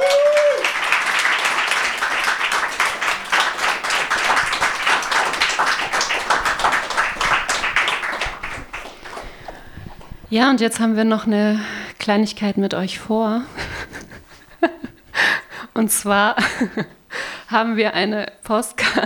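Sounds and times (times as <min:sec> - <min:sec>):
audience applause: 0:00.0 - 0:09.8
speech: 0:10.3 - 0:13.7, 0:15.8 - 0:19.0.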